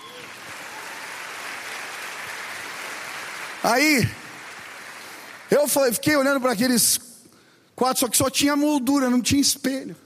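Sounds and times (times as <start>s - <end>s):
audience applause: 0.0s - 5.8s
speech: 3.6s - 4.2s, 5.5s - 7.1s, 7.8s - 10.0s.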